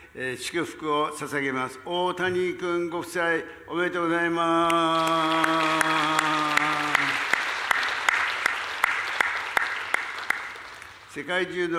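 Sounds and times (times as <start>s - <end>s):
speech: 0.2s - 6.5s, 11.2s - 11.7s
church congregation applauding after a blessing prayer for a newlywed couple: 4.7s - 11.2s.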